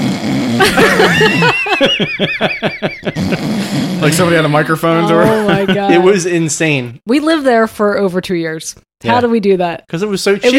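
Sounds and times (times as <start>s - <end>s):
person imitating snoring: 0.0s - 1.0s, 3.1s - 5.7s
person laughing: 0.6s - 6.2s
speech: 0.6s - 10.5s.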